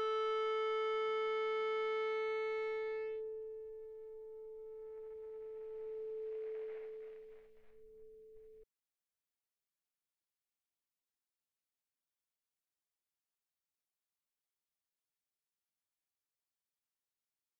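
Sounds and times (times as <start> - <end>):
guitar drone played with an Ebow: 0.0 - 8.6.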